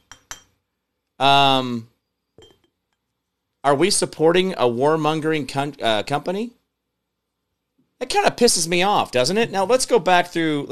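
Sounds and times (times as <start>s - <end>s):
Ball mason jar and its metal lid clinking: 0.0s - 0.6s, 2.4s - 2.7s
speech: 1.2s - 1.9s, 3.6s - 6.6s, 8.0s - 10.7s.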